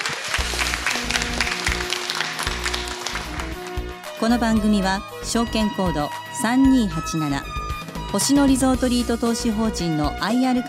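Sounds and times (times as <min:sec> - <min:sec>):
audience applause: 0:00.0 - 0:03.9
speech: 0:04.2 - 0:10.6.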